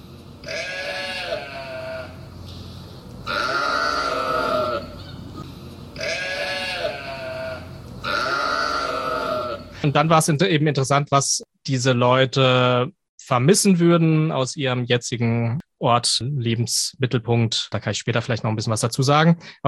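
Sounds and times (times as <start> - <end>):
flock of sheep bleating: 0.4 - 2.2, 3.2 - 5.4, 6.0 - 9.8
speech: 9.8 - 19.6.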